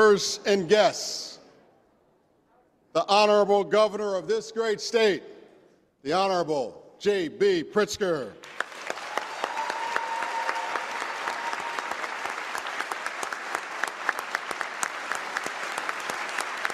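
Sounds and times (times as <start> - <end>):
speech: 0.1 - 1.3, 2.9 - 5.4, 6.0 - 8.7
audience applause after governor's introduction: 8.4 - 16.7.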